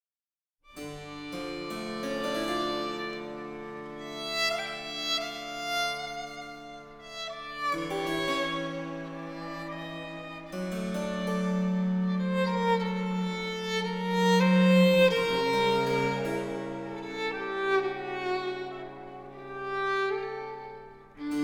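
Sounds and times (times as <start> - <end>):
violin sonata: 0.7 - 21.4.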